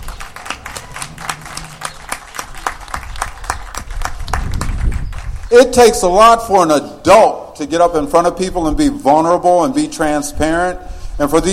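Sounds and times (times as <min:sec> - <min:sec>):
audience applause: 0:00.0 - 0:05.5
low rumble: 0:00.0 - 0:05.5
speech: 0:05.5 - 0:11.5.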